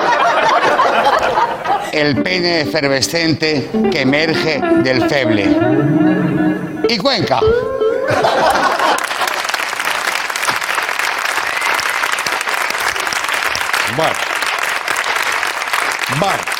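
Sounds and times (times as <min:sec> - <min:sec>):
laughter: 0:00.0 - 0:02.6, 0:08.0 - 0:09.8
speech: 0:02.0 - 0:09.1, 0:14.0 - 0:14.3, 0:16.2 - 0:16.5
courtesy applause: 0:08.7 - 0:16.5.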